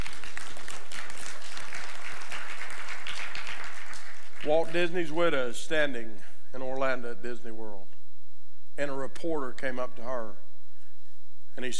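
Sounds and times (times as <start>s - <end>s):
audience applause: 0.0s - 4.7s
speech: 4.4s - 7.9s, 8.8s - 10.4s, 11.6s - 11.7s.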